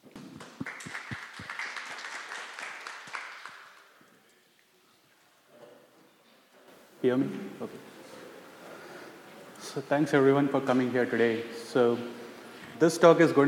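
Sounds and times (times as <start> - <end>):
audience applause: 0.1 - 4.0
speech: 7.0 - 8.0, 9.8 - 12.2, 12.8 - 13.4.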